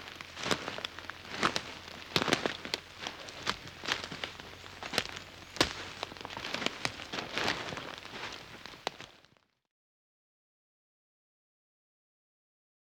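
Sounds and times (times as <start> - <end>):
one person walking on grass and dirt: 0.0 - 9.3.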